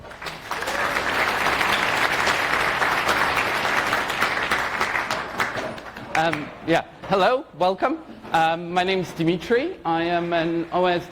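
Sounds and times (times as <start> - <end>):
audience applause: 0.0 - 6.4
speech: 6.2 - 11.1.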